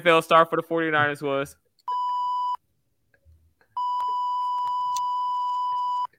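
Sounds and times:
speech: 0.0s - 1.6s
censorship bleep muting a spoken name: 1.9s - 2.6s, 3.8s - 6.1s.

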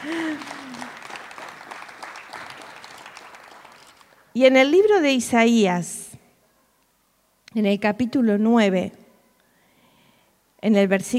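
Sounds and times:
laughter: 0.0s - 1.1s
applause: 0.0s - 4.3s
speech: 4.4s - 6.0s, 7.6s - 9.0s, 10.6s - 11.1s.

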